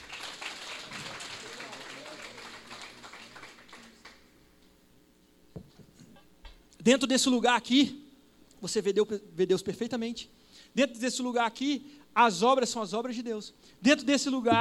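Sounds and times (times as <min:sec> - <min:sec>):
audience applause: 0:00.0 - 0:04.3
speech: 0:06.8 - 0:08.0, 0:08.6 - 0:14.5.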